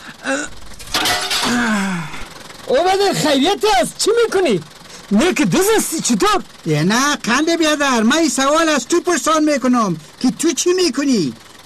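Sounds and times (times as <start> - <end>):
speech: 0.3 - 0.6, 2.7 - 11.4
window glass smashing: 0.7 - 1.8
short voiced gasps or cries: 1.5 - 2.3.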